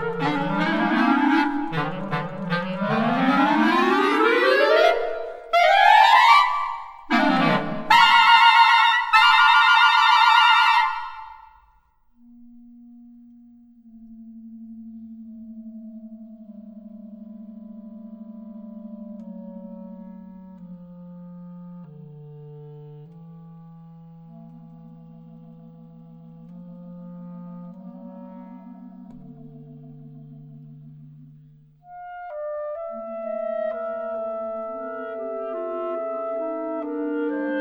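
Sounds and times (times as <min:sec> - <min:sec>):
clarinet pieces: 0:00.0 - 0:11.7, 0:19.2 - 0:37.5.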